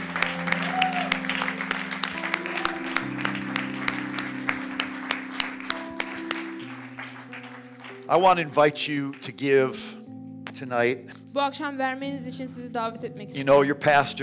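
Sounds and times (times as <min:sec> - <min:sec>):
church congregation clapping during a service: 0:00.0 - 0:10.6
sustained musical chords: 0:00.0 - 0:14.2
speech: 0:08.1 - 0:10.0, 0:10.6 - 0:14.2.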